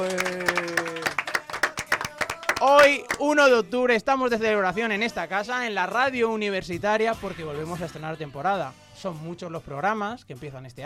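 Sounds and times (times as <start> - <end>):
studio audience clapping at a university radio station's season opening: 0.0 - 3.3
speech: 2.6 - 10.8.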